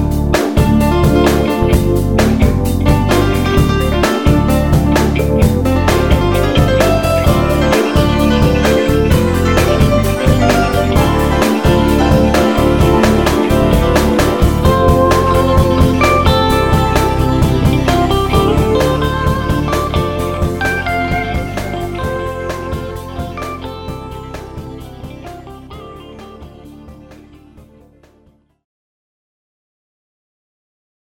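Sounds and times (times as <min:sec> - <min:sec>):
future jazz piano: 0:00.0 - 0:27.4.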